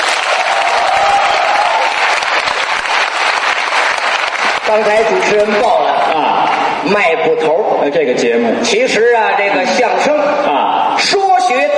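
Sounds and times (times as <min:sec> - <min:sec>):
audience applause: 0:00.0 - 0:06.6
speech: 0:04.7 - 0:11.7.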